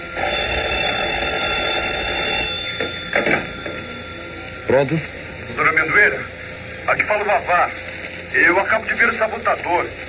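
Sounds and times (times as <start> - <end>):
telephone ringing: 0.0 - 6.5
speech: 4.7 - 5.2, 5.9 - 10.0.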